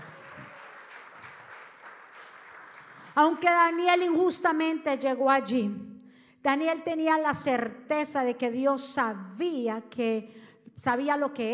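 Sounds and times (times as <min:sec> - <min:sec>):
audience clapping: 0:00.0 - 0:03.2
speech: 0:03.2 - 0:11.5.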